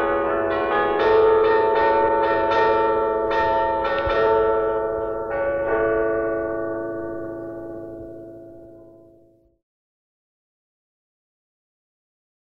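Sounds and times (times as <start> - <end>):
pastorale rung by bell ringers: 0.0 - 9.3.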